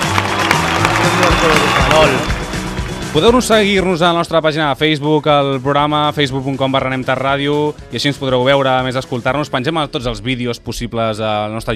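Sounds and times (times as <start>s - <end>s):
applause: 0.0s - 3.7s
speech: 1.0s - 2.3s, 3.1s - 11.7s.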